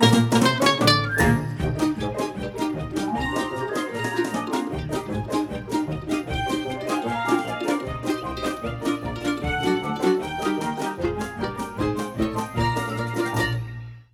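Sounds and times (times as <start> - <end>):
instrumental song: 0.0 - 14.1.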